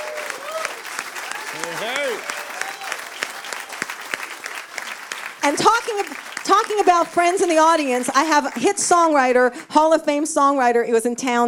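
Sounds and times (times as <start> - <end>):
audience applause at a songwriters' showcase: 0.0 - 9.2
speech: 1.5 - 2.4, 5.5 - 11.4.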